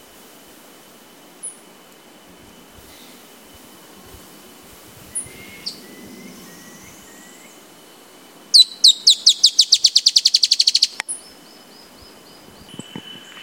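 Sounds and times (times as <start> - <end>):
Drymophila malura calling: 5.1 - 7.6, 8.5 - 12.0.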